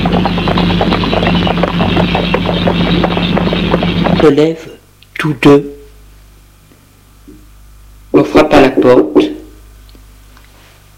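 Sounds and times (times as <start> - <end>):
horse-drawn cab approaching, hooves clip-clopping: 0.0 - 4.4
speech: 4.2 - 5.8, 8.2 - 9.3.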